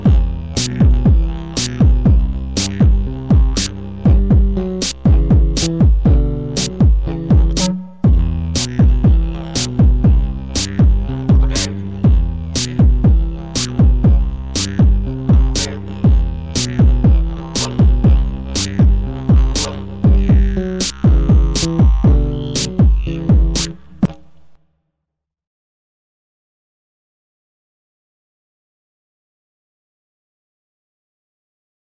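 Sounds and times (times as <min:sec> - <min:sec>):
didgeridoo: 0:00.0 - 0:24.6.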